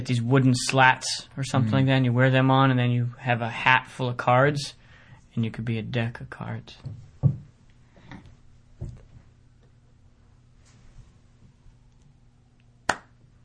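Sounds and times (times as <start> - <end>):
speech: 0.0 - 4.8, 5.4 - 7.0
hand clapping: 0.6 - 0.9, 12.9 - 13.2.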